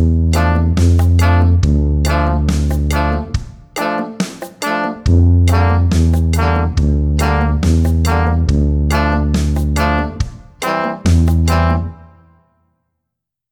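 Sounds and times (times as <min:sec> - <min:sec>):
tuba solo: 0:00.0 - 0:12.4.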